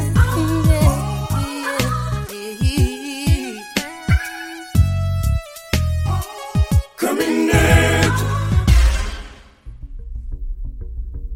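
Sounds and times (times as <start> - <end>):
kwaito music: 0.2 - 9.1.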